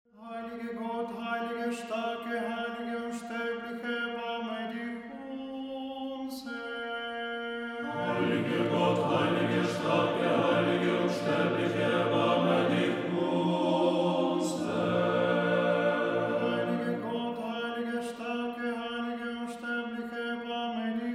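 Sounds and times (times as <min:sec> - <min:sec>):
chanted prayer: 0:00.2 - 0:21.1.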